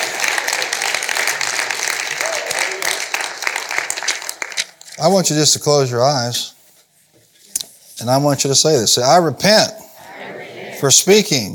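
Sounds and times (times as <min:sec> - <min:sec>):
audience applause and hand clapping: 0:00.0 - 0:04.8
speech: 0:05.0 - 0:06.5, 0:08.0 - 0:09.8, 0:10.8 - 0:11.5.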